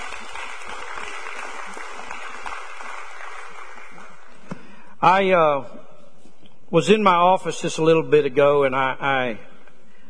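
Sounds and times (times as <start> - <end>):
crowd clapping: 0.0 - 4.5
speech: 5.0 - 5.8, 6.7 - 9.5.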